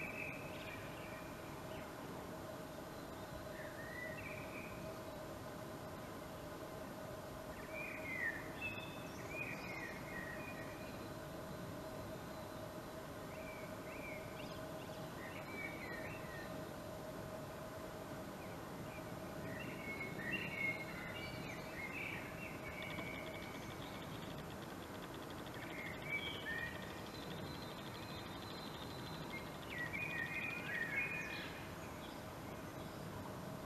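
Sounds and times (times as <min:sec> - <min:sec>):
common blackbird song: 0:00.0 - 0:02.0, 0:02.9 - 0:05.3, 0:07.5 - 0:16.7, 0:18.4 - 0:33.6
background hiss: 0:00.0 - 0:33.6
faint hum: 0:00.0 - 0:33.6.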